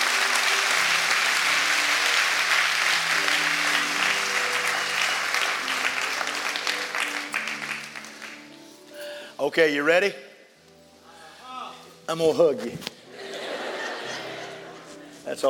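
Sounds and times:
audience clapping: 0:00.0 - 0:08.7
speech: 0:09.4 - 0:10.3, 0:12.1 - 0:12.9, 0:15.3 - 0:15.4
laughter: 0:13.1 - 0:15.2.

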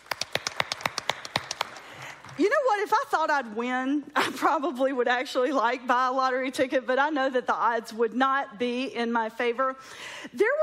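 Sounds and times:
small audience clapping: 0:00.0 - 0:02.6
speech: 0:02.4 - 0:10.6.

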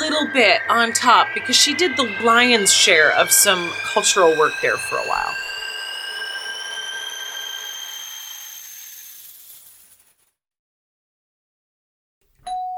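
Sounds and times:
short tone: 0:00.0 - 0:09.5
speech: 0:00.2 - 0:05.5
doorbell ding-dong chime: 0:12.4 - 0:12.7.

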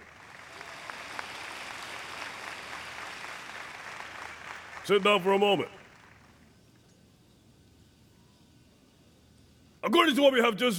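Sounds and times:
loud applause: 0:00.0 - 0:06.3
speech: 0:04.8 - 0:05.8, 0:09.8 - 0:10.7.

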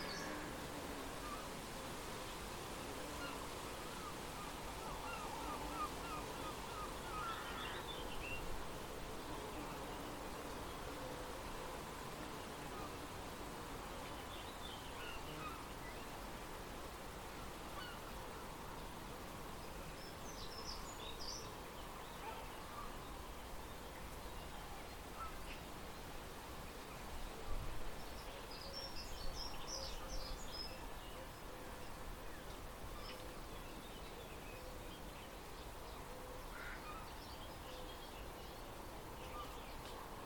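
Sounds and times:
steady rustling outdoor hiss around Rye: 0:00.0 - 0:40.2.

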